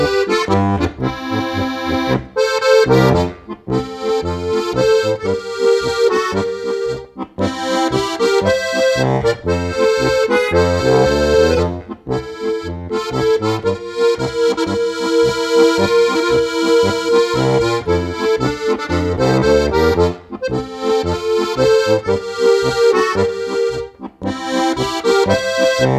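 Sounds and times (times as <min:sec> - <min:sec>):
accordion song: 0:00.0 - 0:25.9.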